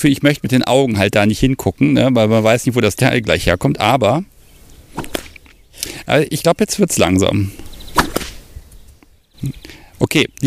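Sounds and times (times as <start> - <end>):
speech: 0.0 - 4.3, 5.8 - 8.0, 9.4 - 10.4
bullwhip crack: 5.0 - 5.4, 7.9 - 8.4.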